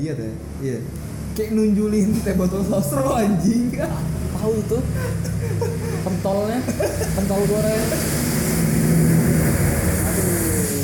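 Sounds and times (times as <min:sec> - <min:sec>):
speech: 0:00.0 - 0:08.3
drag race car engines roaring: 0:02.4 - 0:10.8
laughter: 0:04.8 - 0:07.9.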